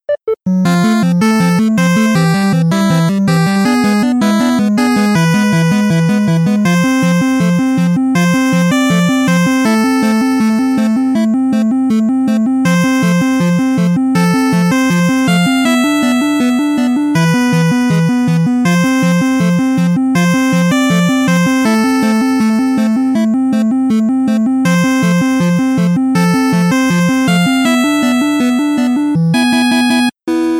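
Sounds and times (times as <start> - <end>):
retro battle music: 0.2 - 30.5.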